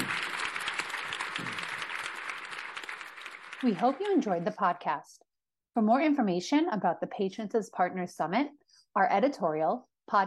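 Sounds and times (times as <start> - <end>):
audience applauding a panel at a summit: 0.0 - 4.7
speech: 3.6 - 10.2.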